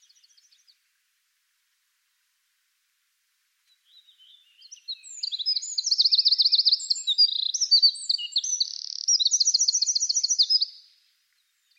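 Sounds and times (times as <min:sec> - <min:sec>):
Eurasian wren singing: 0:03.8 - 0:10.9.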